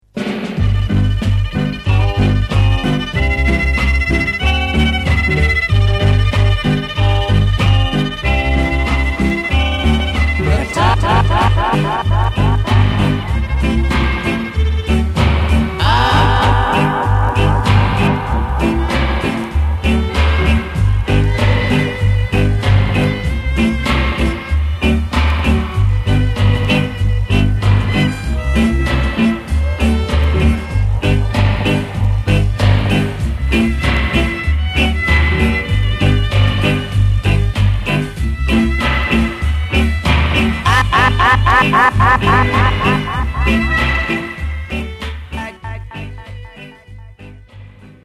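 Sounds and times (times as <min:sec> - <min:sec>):
dub music with strings: 0:00.8 - 0:47.3
laughter: 0:10.4 - 0:13.8, 0:15.8 - 0:19.8, 0:40.7 - 0:44.5.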